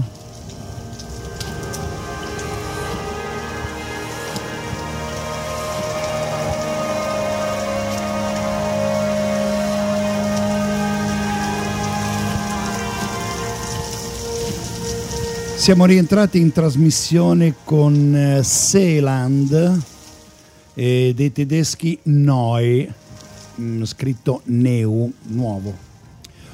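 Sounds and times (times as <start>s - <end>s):
thunderstorm at end of music track: 0.0s - 18.8s
speech: 15.6s - 19.9s, 20.8s - 23.0s, 23.6s - 25.9s.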